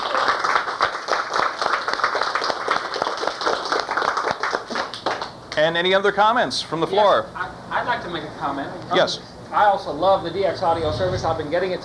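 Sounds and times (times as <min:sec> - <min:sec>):
crowd applauding: 0:00.0 - 0:05.5
speech: 0:05.6 - 0:11.8.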